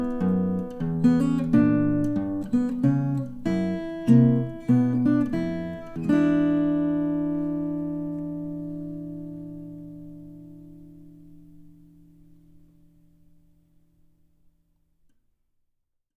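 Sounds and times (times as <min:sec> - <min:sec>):
blues music: 0:00.0 - 0:11.2.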